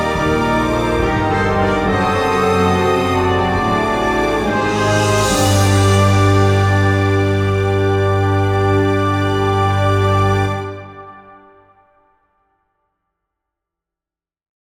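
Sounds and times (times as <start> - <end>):
fantasy battle music: 0.0 - 11.6.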